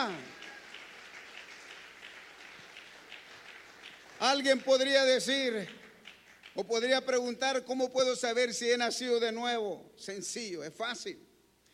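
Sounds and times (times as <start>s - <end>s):
audience applause: 0.0s - 6.6s
speech: 4.2s - 5.8s, 6.6s - 11.3s.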